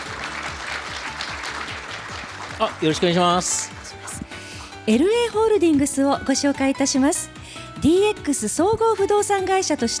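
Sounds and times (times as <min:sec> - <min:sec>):
crowd applause at a corporate presentation: 0:00.0 - 0:05.2
speech: 0:02.6 - 0:03.8, 0:04.8 - 0:09.9.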